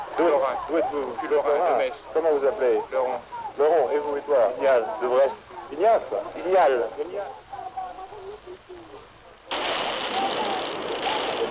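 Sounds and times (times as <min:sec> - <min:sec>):
speech: 0:00.2 - 0:07.4
gunfire on crowd: 0:09.5 - 0:11.4.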